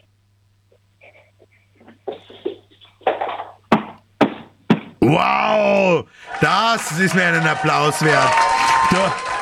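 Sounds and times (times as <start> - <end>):
knocking on a door: 3.7 - 5.0
speech: 5.1 - 9.3.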